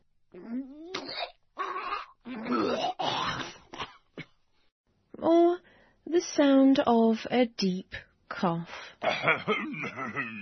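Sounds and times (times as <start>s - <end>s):
person vomiting: 0.4s - 4.0s, 9.0s - 10.4s
speech: 6.2s - 10.4s.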